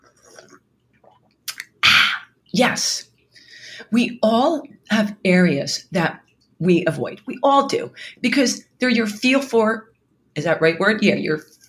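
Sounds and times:
gulp: 0.0s - 2.3s
person taking a sip of a drink: 0.0s - 2.3s
speech: 2.5s - 3.1s, 3.8s - 11.6s.

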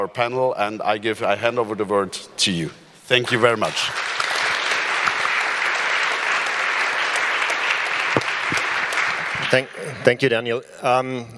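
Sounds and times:
speech: 0.0s - 4.1s, 9.5s - 11.3s
audience applause for the panel: 3.2s - 10.0s.

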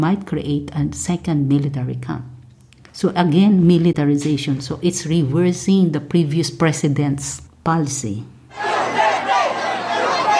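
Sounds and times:
speech: 0.0s - 2.3s, 3.0s - 8.7s
crowd cheering and shouting at arrival: 8.5s - 10.3s.

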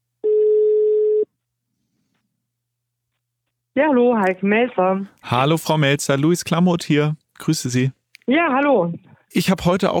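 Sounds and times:
telephone tone as a call is placed: 0.2s - 1.3s
speech: 3.8s - 9.9s.

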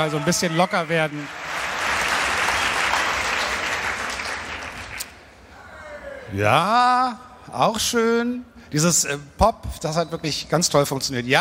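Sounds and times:
speech: 0.0s - 1.5s, 6.3s - 11.3s
audience clapping: 0.0s - 5.2s.

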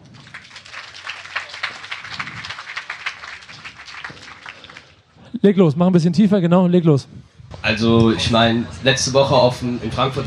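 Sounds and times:
crowd applause: 0.0s - 5.1s
speech: 5.4s - 10.2s.

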